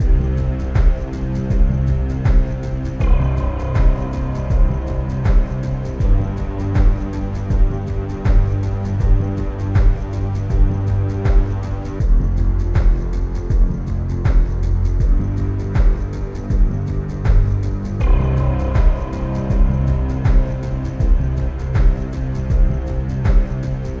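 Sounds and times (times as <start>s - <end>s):
music loop: 0.0s - 23.9s.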